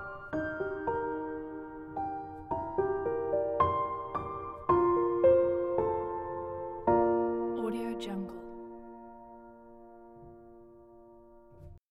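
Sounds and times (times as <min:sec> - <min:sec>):
soundscape piano: 0:00.0 - 0:11.8.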